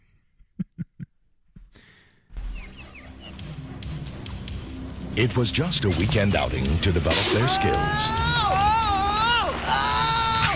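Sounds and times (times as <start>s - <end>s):
speech: 5.2s - 8.3s
fake yell from a movie: 7.1s - 10.5s.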